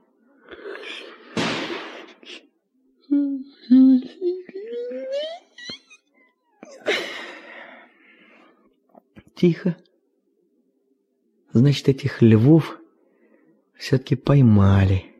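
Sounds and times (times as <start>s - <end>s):
gunshots: 1.4s - 2.1s
speech: 9.4s - 9.9s, 11.6s - 12.8s, 13.8s - 15.1s.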